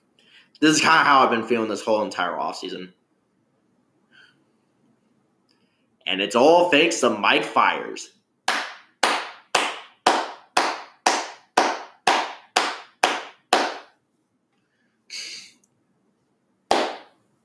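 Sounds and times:
speech: 0.6s - 3.0s, 6.1s - 8.2s
slow sarcastic hand clapping: 8.5s - 14.0s, 16.7s - 17.2s.

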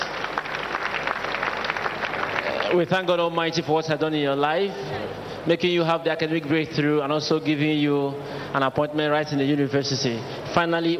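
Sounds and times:
audience clapping: 0.0s - 3.0s
speech: 2.7s - 10.9s.

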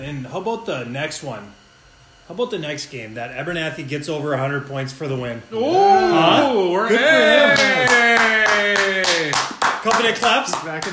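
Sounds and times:
speech: 0.1s - 1.6s, 2.3s - 10.9s
hands clapping: 7.5s - 10.9s.

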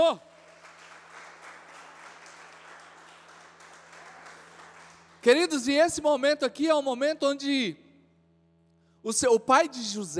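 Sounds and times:
speech: 0.0s - 0.3s, 5.2s - 7.8s, 9.0s - 10.1s
audience applause: 0.3s - 5.3s.

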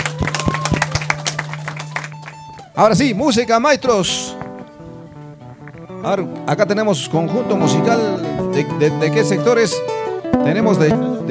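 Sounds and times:
crowd applause: 0.0s - 3.6s
speech: 2.8s - 4.4s, 6.0s - 11.2s.

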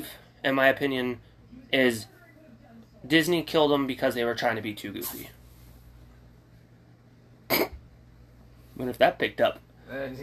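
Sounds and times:
speech: 0.0s - 2.1s, 3.0s - 5.4s, 8.8s - 10.2s
little tiny cat sneezing: 7.5s - 7.8s.

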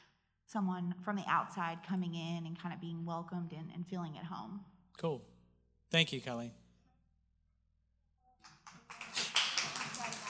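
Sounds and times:
speech: 0.5s - 5.3s, 5.9s - 6.6s
people clapping: 8.4s - 10.2s.

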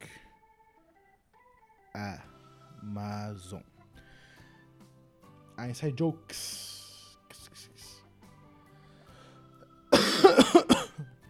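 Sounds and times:
speech: 2.0s - 3.7s, 5.6s - 6.7s
faint wheezy breath: 4.0s - 4.8s, 8.8s - 9.7s
harsh raspy coughing: 9.9s - 11.1s.

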